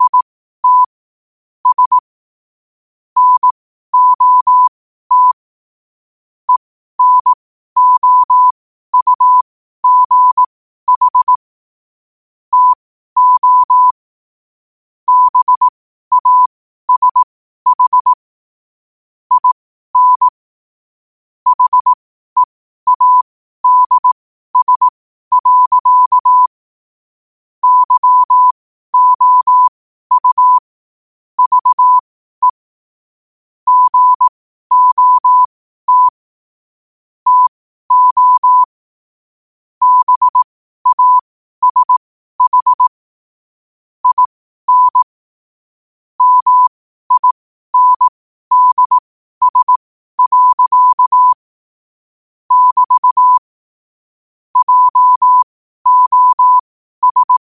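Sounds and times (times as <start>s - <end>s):
morse code at 5 wpm: 0.0s - 0.9s, 1.6s - 2.0s, 3.2s - 5.4s, 6.5s - 11.4s, 12.5s - 14.0s, 15.1s - 18.2s, 19.3s - 20.3s, 21.5s - 26.6s, 27.6s - 30.7s, 31.4s - 32.6s, 33.7s - 36.2s, 37.2s - 38.8s, 39.8s - 43.0s, 44.0s - 45.1s, 46.2s - 51.5s, 52.5s - 53.5s, 54.6s - 57.4s.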